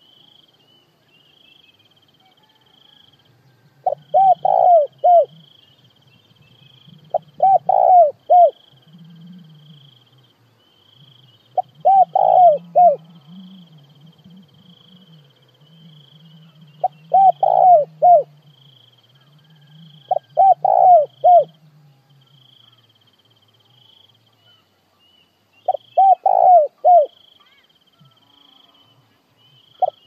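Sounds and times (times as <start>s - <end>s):
constant high-pitched insect trill: 0.0s - 30.0s
spotted dove cooing: 3.8s - 5.6s, 6.5s - 10.2s, 11.0s - 22.8s, 25.6s - 29.0s, 29.6s - 30.0s.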